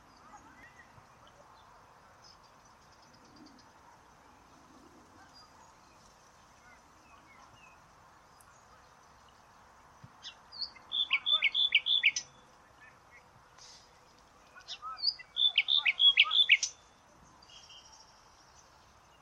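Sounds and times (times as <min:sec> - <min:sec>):
bird singing whistled notes: 0:10.2 - 0:12.4, 0:14.6 - 0:18.3.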